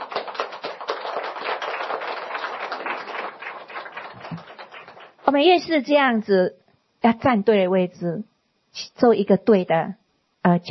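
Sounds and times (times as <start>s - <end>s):
crowd applause: 0.0s - 5.2s
speech: 5.3s - 8.3s, 9.0s - 10.6s.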